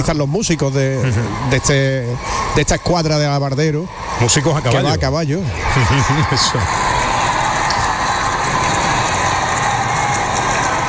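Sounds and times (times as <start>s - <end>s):
speech: 0.0s - 7.0s
crowd cheering for León XIV: 0.0s - 10.8s.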